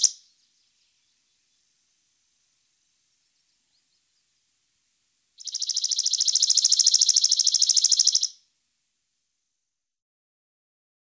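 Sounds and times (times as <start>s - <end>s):
chipping sparrow singing: 0.0s - 1.8s, 5.4s - 8.4s.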